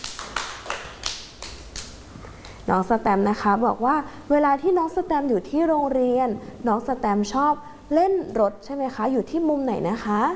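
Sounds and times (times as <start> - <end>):
young children and their teacher clapping rhythmically at school: 0.0 - 2.6
speech: 2.7 - 10.3.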